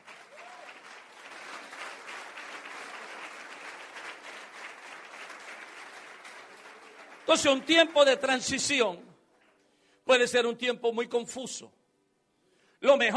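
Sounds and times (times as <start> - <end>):
audience applauding: 0.0 - 8.8
speech: 7.3 - 9.1, 10.1 - 11.8, 12.8 - 13.1.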